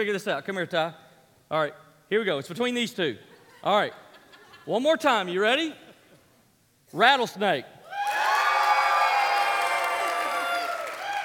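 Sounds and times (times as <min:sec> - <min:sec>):
speech: 0:00.0 - 0:04.0, 0:04.7 - 0:05.8, 0:06.9 - 0:07.8
audience cheering and whooping: 0:07.8 - 0:11.2.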